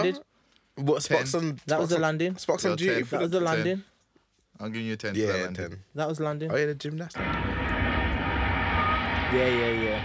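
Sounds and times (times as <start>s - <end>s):
speech: 0.0s - 3.9s, 4.6s - 7.7s, 9.3s - 10.0s
airplane taking off sound effect: 7.2s - 10.0s.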